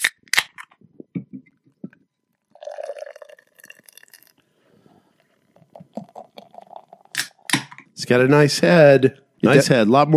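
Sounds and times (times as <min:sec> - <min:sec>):
beer can cracked open: 0:00.0 - 0:00.7, 0:07.1 - 0:07.8
beer poured vigorously out of the can: 0:02.3 - 0:07.8
speech: 0:08.1 - 0:10.1.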